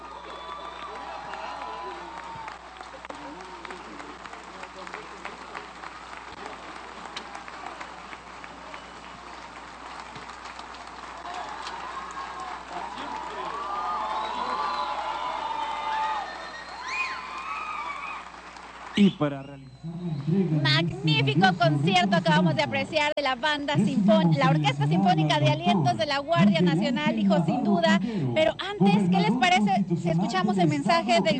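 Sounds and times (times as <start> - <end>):
audience applause after concert: 0.0 - 22.8
speech: 19.0 - 19.5, 20.2 - 31.3.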